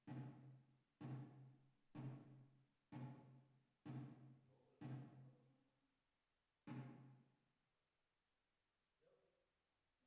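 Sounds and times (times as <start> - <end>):
drums with reverb: 0.0 - 5.5.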